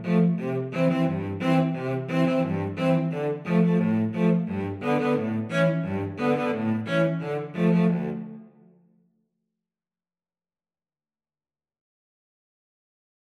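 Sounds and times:
violin: 0.0 - 8.7
cello: 0.0 - 8.8.

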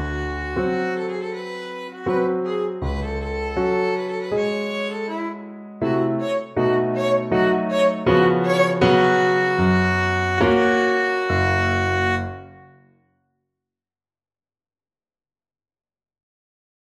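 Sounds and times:
Romanian folk dance on violin: 0.0 - 12.7.

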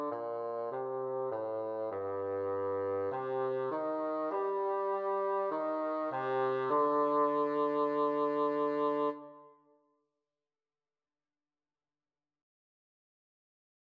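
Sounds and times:
bassoon duet: 0.0 - 9.5.

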